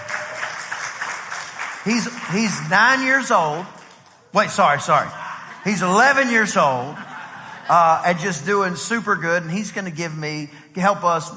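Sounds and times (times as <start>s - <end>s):
audience applause: 0.0s - 4.2s
speech: 1.8s - 7.0s, 7.7s - 11.3s
laughter: 4.8s - 8.8s.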